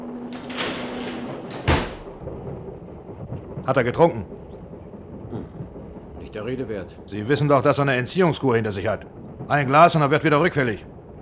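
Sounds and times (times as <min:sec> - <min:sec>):
door being closed: 0:00.0 - 0:02.3
speech: 0:03.7 - 0:04.4, 0:06.4 - 0:11.0.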